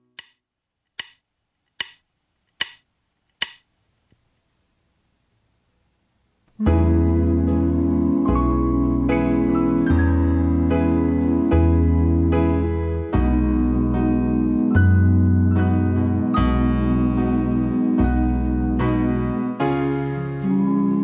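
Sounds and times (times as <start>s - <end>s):
karaoke backing track: 6.6s - 21.0s.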